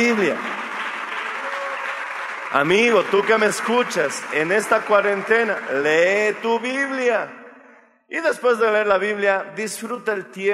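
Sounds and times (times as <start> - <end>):
speech: 0.0 - 0.6, 2.5 - 7.4, 8.1 - 10.5
audience applause: 0.0 - 6.4.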